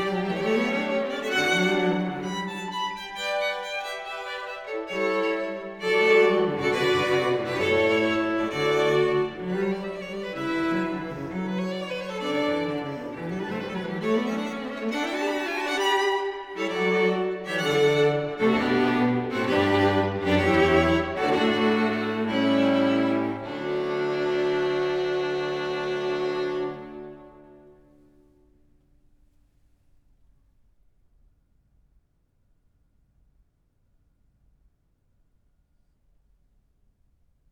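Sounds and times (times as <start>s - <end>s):
string quartet playing a fugue in G sharp minor: 0.0s - 27.8s.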